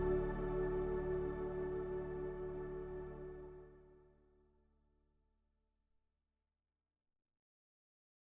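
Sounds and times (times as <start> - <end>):
Sequential Prophet X synthesizer: 0.0 - 4.2.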